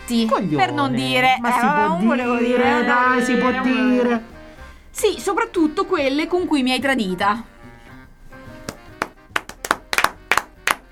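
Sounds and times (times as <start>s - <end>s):
speech: 0.1s - 4.3s, 5.0s - 7.5s
soft hum of voices: 0.8s - 4.3s
scattered hand claps: 8.6s - 10.8s.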